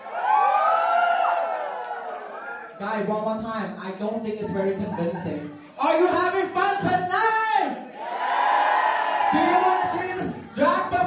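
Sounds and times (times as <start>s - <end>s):
audience cheering for drag queens: 0.0s - 2.8s, 7.9s - 10.7s
speech: 2.8s - 7.2s.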